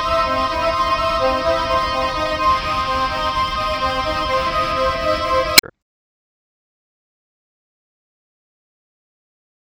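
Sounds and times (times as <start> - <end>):
atmosphere: 0.0 - 5.6.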